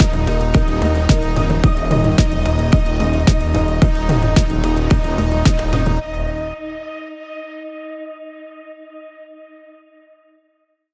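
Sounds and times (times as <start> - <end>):
electronic ambient music: 0.0 - 7.6.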